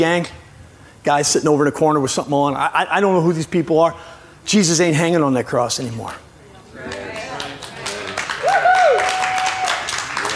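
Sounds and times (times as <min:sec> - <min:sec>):
speech: 0:00.0 - 0:00.4, 0:01.0 - 0:07.0
audience clapping: 0:06.8 - 0:10.3.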